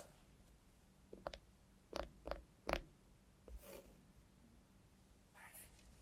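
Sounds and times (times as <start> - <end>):
robot hand clicks, taps and metallic rattles: 1.1 - 2.9.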